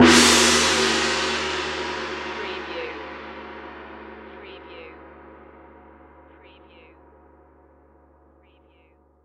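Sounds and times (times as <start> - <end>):
music: 0.0 - 9.2.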